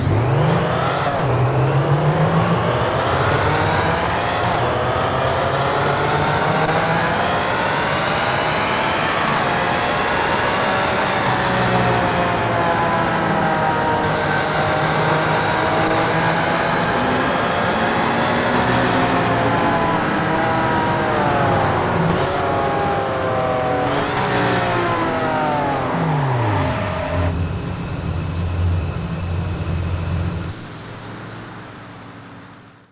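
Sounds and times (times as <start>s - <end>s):
BMW 1M car: 0.0s - 32.9s.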